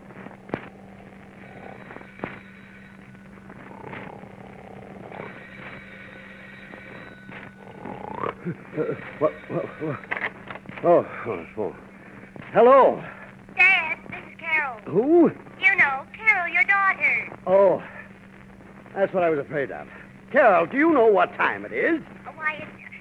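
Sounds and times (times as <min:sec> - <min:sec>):
steady low hum: 0:00.0 - 0:23.0
man snoring energetically in bed: 0:00.4 - 0:02.3, 0:03.6 - 0:05.7, 0:07.6 - 0:08.5
speech: 0:08.5 - 0:10.2, 0:10.8 - 0:11.9, 0:12.5 - 0:13.2, 0:14.9 - 0:15.4, 0:17.5 - 0:17.9, 0:19.0 - 0:22.1.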